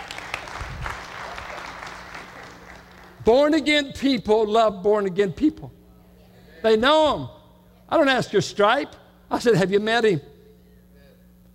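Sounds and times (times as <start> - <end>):
audience applause: 0.0 - 3.2
speech: 3.2 - 5.8, 6.6 - 10.3.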